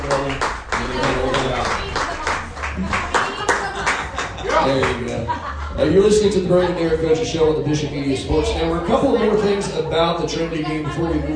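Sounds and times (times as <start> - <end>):
round of applause: 0.0 - 5.2
laughter: 0.8 - 7.6, 8.2 - 11.3
speech: 5.8 - 11.3.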